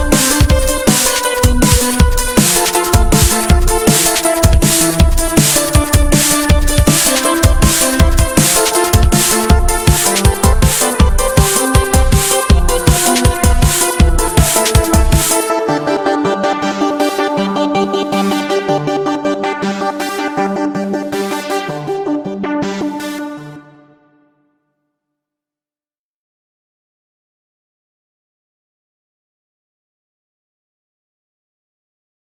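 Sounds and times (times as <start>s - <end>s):
pop drum and bass music: 0.0s - 23.8s.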